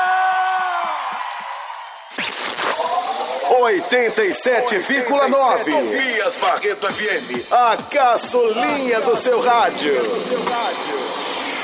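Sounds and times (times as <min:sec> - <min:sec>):
audience applause: 0:00.5 - 0:04.8
speech: 0:03.5 - 0:11.0.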